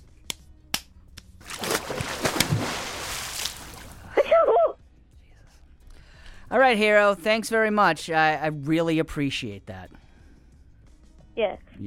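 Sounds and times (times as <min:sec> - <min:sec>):
sharp crisp slaps: 0:00.1 - 0:03.8
rushing splashy wash of noise: 0:01.5 - 0:04.0
speech: 0:06.5 - 0:10.0, 0:11.4 - 0:11.8.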